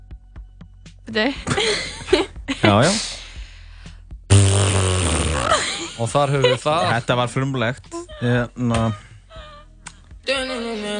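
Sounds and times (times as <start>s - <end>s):
speech: 1.1s - 3.2s, 6.0s - 9.0s
fart noise performed as a fart poem: 4.3s - 5.6s.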